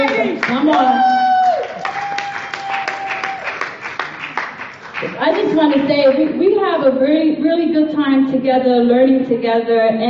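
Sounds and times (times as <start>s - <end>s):
audience clapping hands: 0.0s - 6.4s
speech: 5.6s - 10.0s.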